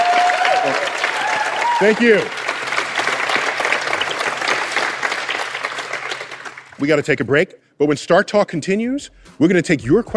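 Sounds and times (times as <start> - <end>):
studio audience applauding author Andy Weir on Star Talk: 0.0 - 6.8
speech: 1.8 - 2.4, 6.8 - 10.1.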